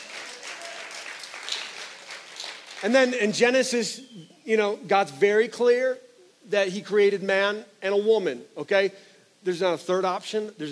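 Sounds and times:
crowd applauding: 0.0s - 3.2s
speech: 2.8s - 10.6s.

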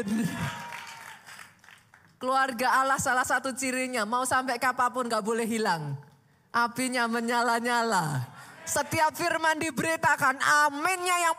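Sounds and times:
speech: 0.0s - 0.7s, 2.2s - 11.3s
audience applause: 0.0s - 1.9s.

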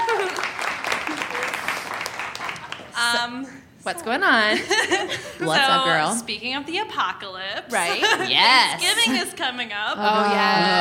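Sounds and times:
audience applause for a guest at a live show: 0.0s - 3.0s
speech: 3.1s - 10.7s.

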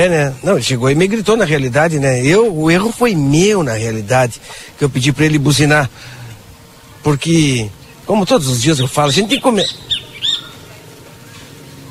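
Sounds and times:
speech: 0.0s - 6.2s, 7.0s - 10.0s
rufous hornero calls: 6.0s - 11.8s.

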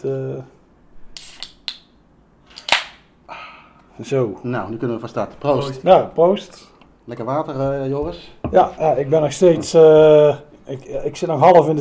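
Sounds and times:
speech: 0.0s - 0.6s, 4.0s - 11.7s
Imperial Cerveza Especial beer can being opened: 1.2s - 1.9s, 2.5s - 3.0s.

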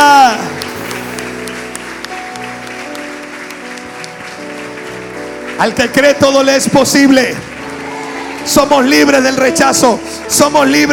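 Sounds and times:
crowd clapping loudly: 0.4s - 9.9s
speech: 5.6s - 7.5s, 8.4s - 10.9s.

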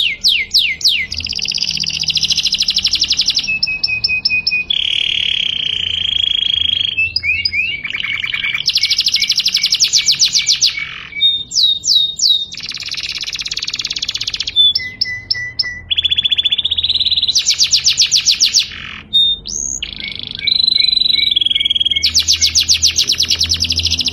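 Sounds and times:
canary in continuous song: 0.0s - 24.1s.

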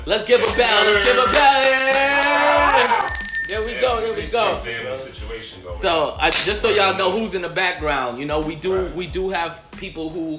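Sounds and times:
speech: 0.0s - 10.3s
bell ringing: 0.4s - 4.4s.

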